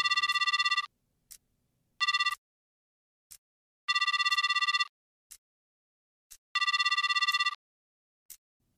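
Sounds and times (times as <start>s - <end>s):
unanswered outgoing telephone call ringing: 0.0s - 0.9s, 2.0s - 2.4s, 3.9s - 4.9s, 6.6s - 7.6s.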